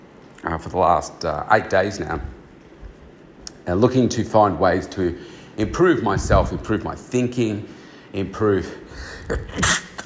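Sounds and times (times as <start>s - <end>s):
speech: 0.4s - 2.4s, 3.7s - 10.0s
sneeze: 9.5s - 10.0s.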